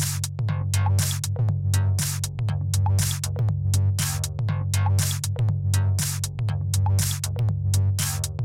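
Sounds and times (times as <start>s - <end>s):
Volca synthesizer mix jam: 0.1s - 8.4s.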